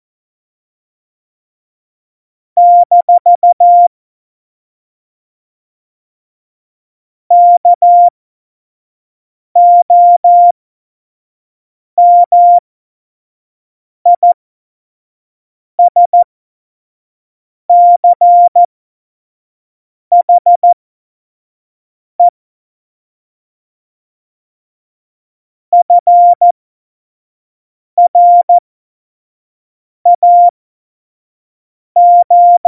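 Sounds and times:
Morse code course beeps: 2.6 - 3.9, 7.3 - 8.1, 9.6 - 10.5, 12.0 - 12.6, 14.2 - 14.4, 15.8 - 16.2, 17.7 - 18.7, 20.1 - 20.8, 25.8 - 26.4, 28.0 - 28.6, 30.1 - 30.5, 32.0 - 32.6.

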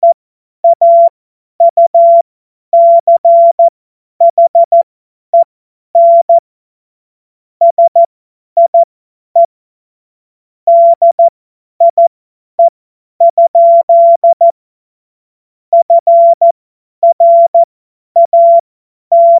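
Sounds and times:
CW Morse code beeps: 0.0 - 2.2, 2.8 - 4.8, 6.0 - 6.4, 7.6 - 9.5, 10.7 - 14.6, 15.8 - 19.3.

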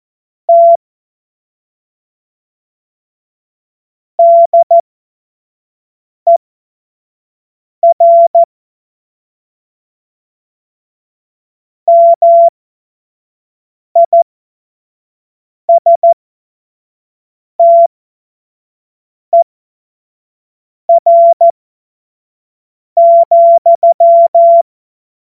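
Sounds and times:
CW Morse code beeps: 0.5 - 0.8, 4.2 - 4.8, 7.8 - 8.5, 11.9 - 12.5, 14.0 - 14.2, 15.7 - 16.2, 17.6 - 17.9, 20.9 - 21.5, 23.0 - 24.6.

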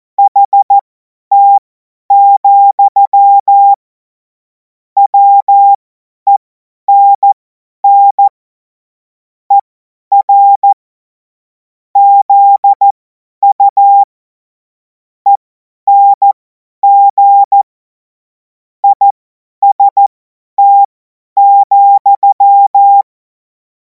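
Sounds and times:
CW Morse code beeps: 0.2 - 3.8, 5.0 - 8.3, 9.5 - 10.8, 12.0 - 14.1, 15.3 - 17.7, 18.8 - 23.1.

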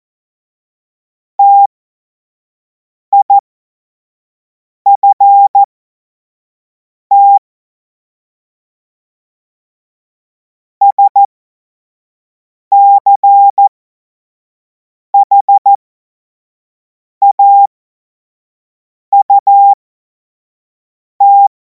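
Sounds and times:
Morse code course tones: 1.4 - 1.7, 4.9 - 5.7, 10.9 - 11.3, 12.7 - 13.6, 15.2 - 15.7, 17.2 - 17.7, 19.1 - 19.8, 21.2 - 21.5.

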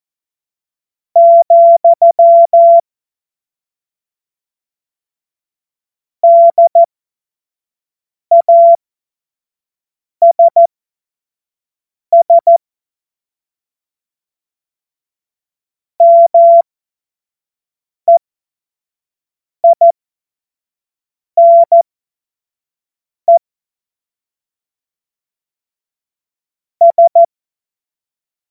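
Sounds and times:
CW Morse code beeps: 1.2 - 2.8, 6.2 - 6.9, 8.3 - 8.8, 10.2 - 10.7, 12.1 - 12.6, 16.0 - 16.6, 19.6 - 19.9, 21.4 - 21.8, 26.8 - 27.3.

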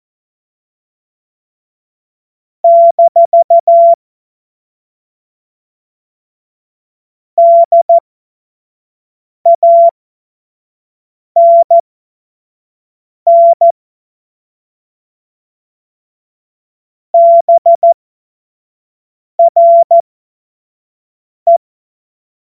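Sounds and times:
morse code CW: 2.7 - 4.0, 7.4 - 8.0, 9.5 - 9.9, 11.4 - 11.8, 13.3 - 13.7, 17.2 - 18.0, 19.4 - 20.0.

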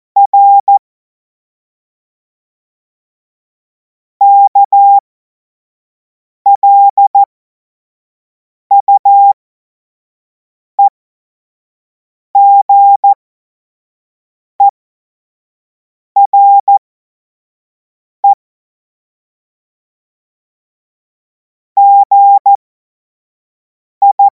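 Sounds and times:
CW Morse code beeps: 0.2 - 0.8, 4.2 - 5.0, 6.5 - 7.3, 8.7 - 9.4, 12.4 - 13.2, 16.2 - 16.8, 21.8 - 22.6, 24.0 - 24.2.

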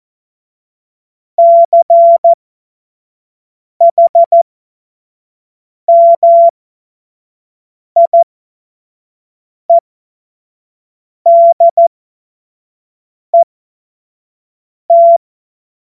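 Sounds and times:
CW Morse code beeps: 1.4 - 2.4, 3.8 - 4.4, 5.9 - 6.5, 8.0 - 8.2, 11.3 - 11.9, 14.9 - 15.2.

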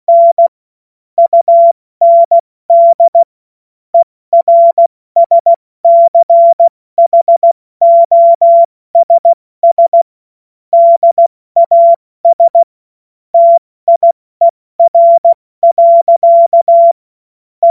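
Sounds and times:
CW Morse code beeps: 0.1 - 0.5, 1.2 - 3.3, 4.4 - 10.1, 10.8 - 12.7, 13.4 - 17.0.

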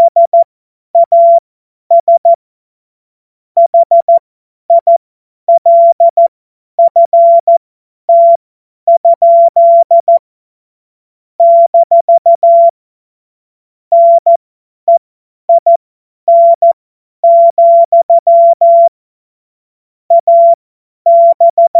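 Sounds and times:
CW Morse code beeps: 0.0 - 0.4, 1.0 - 2.4, 3.6 - 10.2, 11.4 - 12.7, 13.9 - 18.9, 20.1 - 21.7.

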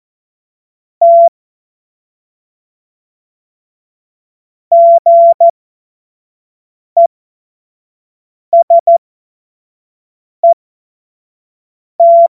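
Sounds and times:
Morse code course tones: 1.0 - 1.3, 4.7 - 5.5, 12.0 - 12.3.

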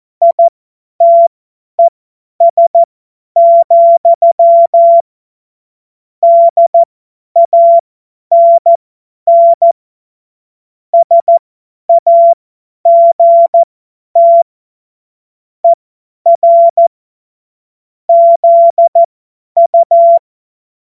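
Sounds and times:
CW Morse code beeps: 0.2 - 5.0, 6.2 - 9.8, 11.0 - 14.4, 15.6 - 16.9, 18.1 - 20.2.

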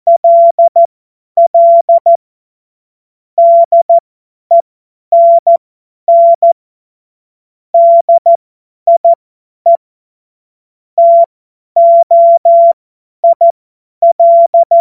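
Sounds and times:
CW Morse code beeps: 0.1 - 2.2, 3.4 - 6.6, 7.8 - 9.1, 11.0 - 14.8.

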